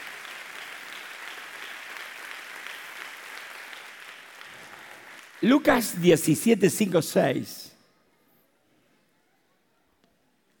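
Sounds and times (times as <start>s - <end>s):
audience applause: 0.0s - 6.9s
speech: 5.4s - 7.7s.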